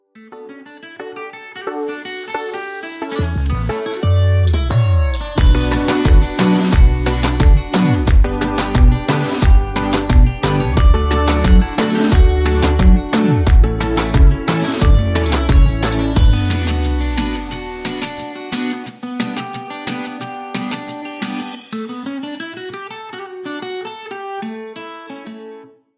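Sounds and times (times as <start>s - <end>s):
instrumental ringtone: 1.0s - 18.7s.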